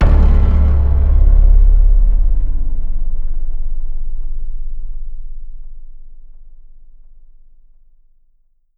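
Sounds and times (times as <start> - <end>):
percussion: 0.0 - 7.2.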